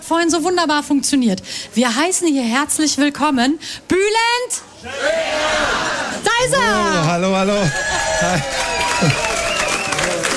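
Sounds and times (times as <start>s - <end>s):
speech: 0.1s - 9.3s
shouting and whooping voices: 4.8s - 10.3s
live audience applause welcoming a comedian onto the stage: 7.7s - 10.3s.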